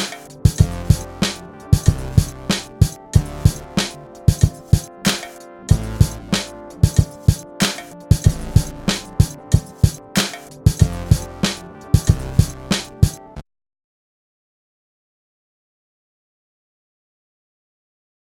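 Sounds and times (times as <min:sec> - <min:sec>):
drum breaks: 0:00.0 - 0:13.4.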